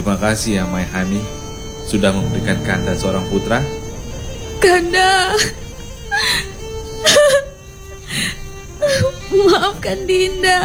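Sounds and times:
speech: 0.0s - 3.8s, 4.6s - 5.6s, 8.2s - 10.6s
woman crying: 4.6s - 10.6s.

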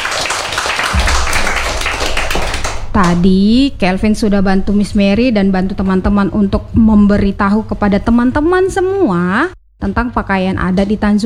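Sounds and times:
children clapping: 0.0s - 3.2s
speech: 3.0s - 11.2s.

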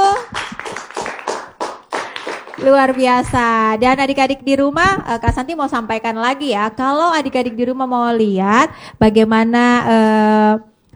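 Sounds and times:
children clapping in unison in a studio: 0.0s - 3.1s
speech: 2.6s - 10.7s.

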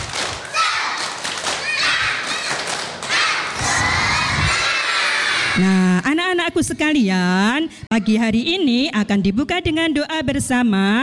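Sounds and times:
clapping: 0.0s - 3.6s
children cheering and shouting: 0.4s - 5.6s
speech: 5.6s - 11.0s.

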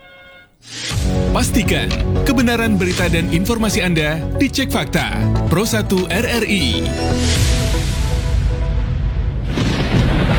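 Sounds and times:
speech: 1.4s - 7.6s
thunder from a lightning storm: 7.5s - 10.3s.

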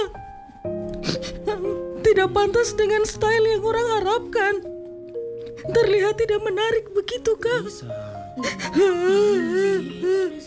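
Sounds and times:
speech: 2.1s - 4.7s, 5.6s - 10.4s
girl wailing and crying: 8.4s - 10.4s.

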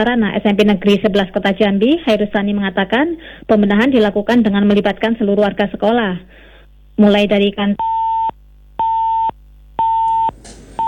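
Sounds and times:
speech: 0.0s - 6.4s, 7.0s - 7.9s
telephone busy tone after a call with a reporter is cut off: 7.8s - 10.8s.

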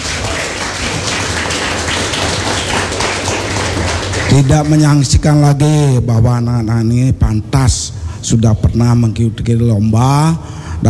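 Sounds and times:
audience applause: 0.0s - 5.4s
speech: 4.4s - 10.8s.

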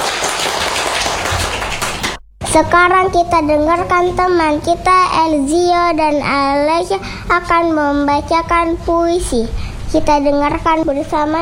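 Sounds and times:
crowd applause: 0.0s - 2.2s
speech: 2.6s - 11.4s.

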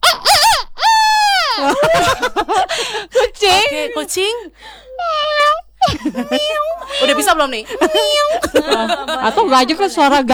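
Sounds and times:
laughter: 1.3s - 5.0s, 5.8s - 10.3s
speech: 3.0s - 5.1s, 6.1s - 10.3s
person imitating a chicken: 5.0s - 9.4s.

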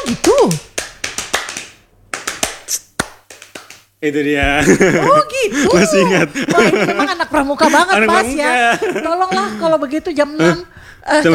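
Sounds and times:
Scout rhythmic clapping pattern: 0.0s - 4.0s
speech: 0.1s - 0.7s, 4.0s - 11.3s
laughter: 4.6s - 10.7s.

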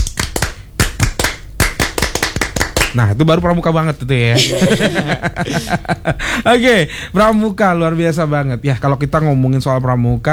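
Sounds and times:
rhythmic Scout clap tepuk pramuka by a small group: 0.0s - 3.1s
speech: 2.9s - 10.3s
laughter: 4.3s - 6.9s.

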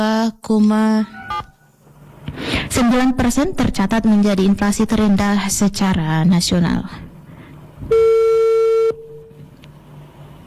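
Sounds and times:
speech: 0.0s - 1.2s, 2.7s - 7.1s, 7.8s - 8.2s
faint noise: 0.0s - 10.4s
telephone dialing tones: 1.2s - 1.6s, 7.9s - 9.6s.

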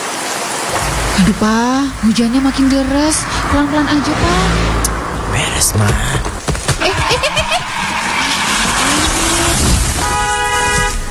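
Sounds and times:
tires skidding: 0.0s - 11.0s
car braking hard: 0.1s - 11.0s
speech: 1.2s - 6.3s
laughter: 6.6s - 8.9s.

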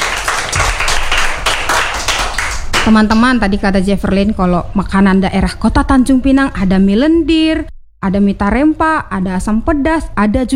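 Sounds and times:
audience clapping for a student after a talk on Tanjung Pinang foods: 0.0s - 4.6s
speech: 2.9s - 10.5s.

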